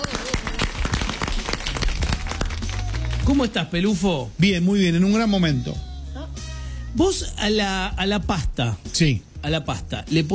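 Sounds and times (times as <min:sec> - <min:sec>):
applause: 0:00.0 - 0:03.6
speech: 0:03.3 - 0:05.9, 0:06.9 - 0:10.3.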